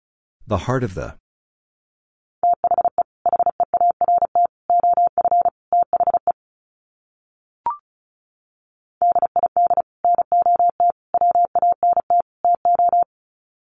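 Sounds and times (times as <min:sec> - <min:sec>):
person speaking: 0:00.4 - 0:01.2
Morse code beeps at 35 wpm: 0:02.4 - 0:06.3, 0:09.0 - 0:13.1.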